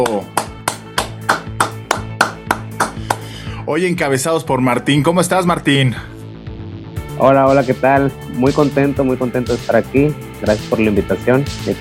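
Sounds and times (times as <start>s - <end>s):
speech: 0.0s - 0.4s, 3.7s - 6.1s, 7.2s - 11.7s
rhythmic clapping in unison: 0.0s - 3.4s.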